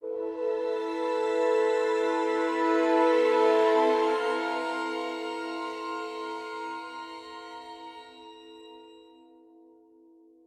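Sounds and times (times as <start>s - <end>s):
sad music stinger: 0.0s - 8.2s.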